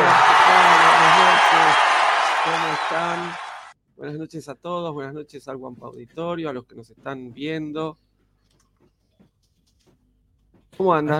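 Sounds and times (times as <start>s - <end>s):
audience applause: 0.0s - 3.7s
speech: 4.3s - 8.0s, 10.8s - 11.1s.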